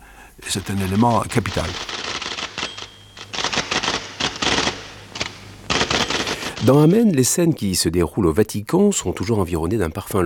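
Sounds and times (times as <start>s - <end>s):
speech: 0.4s - 2.0s, 6.6s - 10.2s
typewriter keys clattering: 0.5s - 7.0s.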